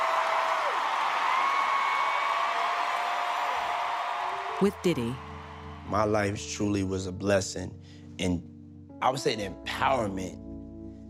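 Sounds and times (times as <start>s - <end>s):
large audience clapping and cheering: 0.0s - 6.5s
speech: 4.6s - 5.3s, 5.9s - 10.4s.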